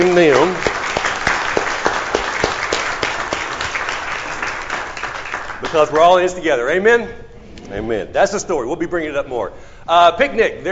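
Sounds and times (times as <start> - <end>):
speech: 0.0 - 0.6, 5.8 - 10.6
audience clapping: 0.0 - 6.5.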